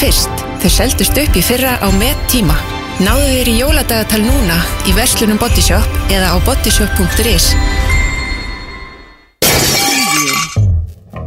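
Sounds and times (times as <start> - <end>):
speech: 0.0 - 7.9
window pane glass shattering: 9.4 - 10.7.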